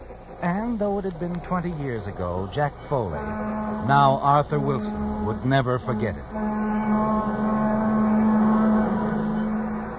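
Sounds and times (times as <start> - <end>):
rumbling mechanical drone: 0.0 - 9.9
speech: 0.4 - 7.8
train whistle wailing: 2.9 - 9.9.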